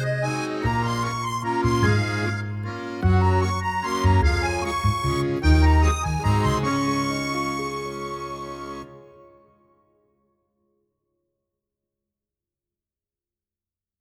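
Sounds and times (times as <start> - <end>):
French accordion waltz: 0.0 - 9.4.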